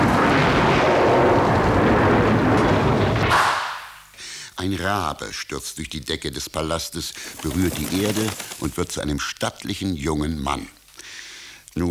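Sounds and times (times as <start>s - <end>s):
rolling thunderclap in a storm: 0.0s - 3.5s
speech: 4.6s - 10.8s.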